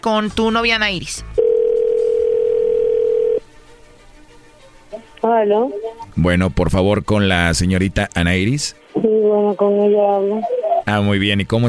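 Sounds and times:
speech: 0.0 - 1.3, 4.9 - 11.6
telephone dialing tone: 1.4 - 3.4.

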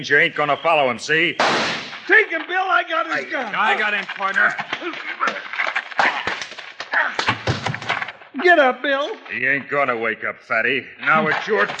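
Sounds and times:
speech: 0.0 - 5.5, 8.4 - 11.7
heavy punches landing in a brawl: 1.4 - 2.3, 4.4 - 8.2
scuffling and shuffling: 2.1 - 8.2
grunting voices: 3.1 - 7.3.

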